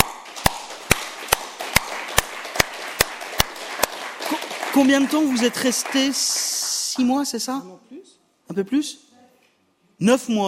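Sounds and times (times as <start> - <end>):
audience applause: 0.0 - 7.1
speech: 4.8 - 9.0, 10.0 - 10.4.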